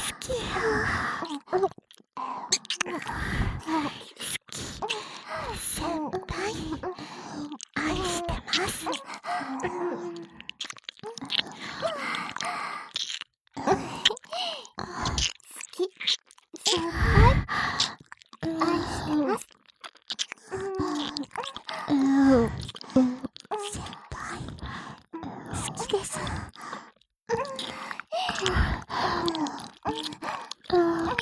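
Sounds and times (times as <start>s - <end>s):
person whispering: 0.0s - 13.0s, 13.6s - 16.0s, 16.6s - 19.5s, 20.5s - 31.2s
licking sounds in both ears: 6.9s - 16.8s, 17.4s - 31.2s.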